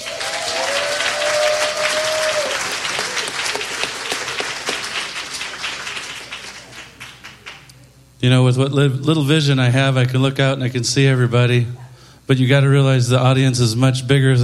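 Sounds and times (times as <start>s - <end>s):
audience applause at a live weekend event: 0.0s - 7.7s
speech: 8.2s - 14.4s.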